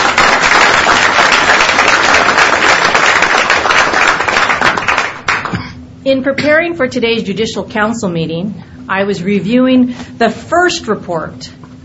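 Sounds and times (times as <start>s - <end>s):
audience applause: 0.0s - 5.6s
speech: 6.1s - 11.8s.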